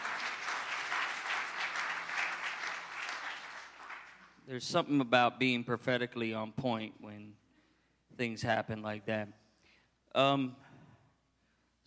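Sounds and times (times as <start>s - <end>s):
crowd applauding: 0.0s - 4.4s
speech: 4.5s - 7.4s, 8.1s - 9.4s, 10.1s - 10.6s.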